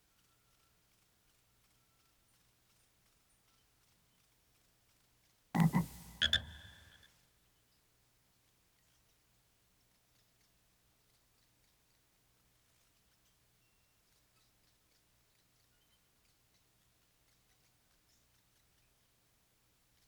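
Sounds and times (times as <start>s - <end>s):
frog croaking: 5.6s - 7.0s.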